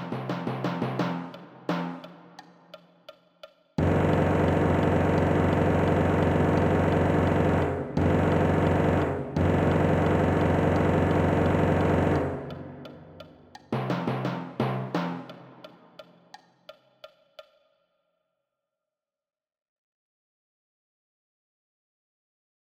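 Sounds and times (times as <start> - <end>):
timpani: 0.0 - 2.1, 3.8 - 15.8.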